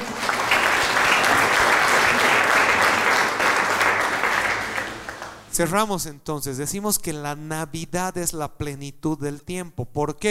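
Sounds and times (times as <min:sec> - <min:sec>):
audience applause: 0:00.0 - 0:05.5
speech: 0:05.6 - 0:10.2.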